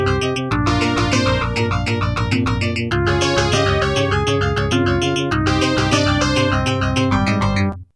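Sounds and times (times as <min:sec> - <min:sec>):
modular synthesizer sound: 0:00.0 - 0:07.7.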